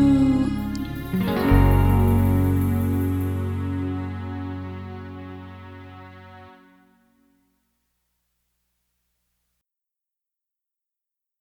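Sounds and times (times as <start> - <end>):
jingle: 0.0 - 5.5.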